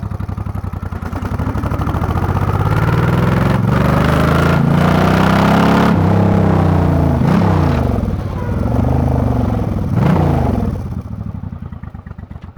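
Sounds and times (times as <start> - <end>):
Suzuki VL 1500 Intruder motorcycle on the road: 0.0 - 12.5.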